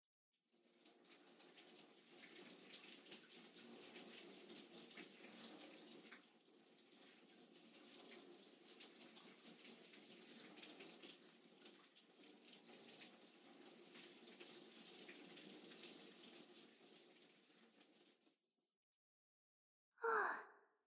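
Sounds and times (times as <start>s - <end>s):
water pouring in a bath rinse: 0.4s - 18.7s
breathy gasp or sigh: 20.0s - 20.6s.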